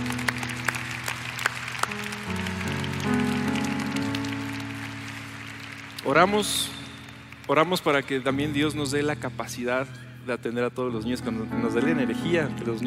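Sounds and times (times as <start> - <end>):
audience applause: 0.0 - 8.3
speech: 6.1 - 6.8, 7.5 - 12.8.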